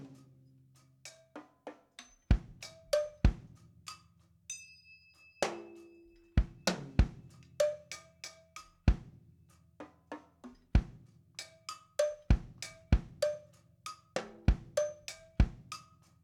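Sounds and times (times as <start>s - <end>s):
drum kit ending section: 2.3s - 3.5s, 6.4s - 7.3s, 12.3s - 13.2s, 14.2s - 15.7s.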